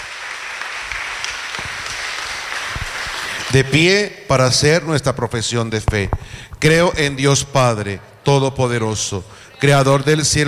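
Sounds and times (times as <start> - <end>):
audience applauding: 0.0 - 3.8
speech: 3.5 - 10.4.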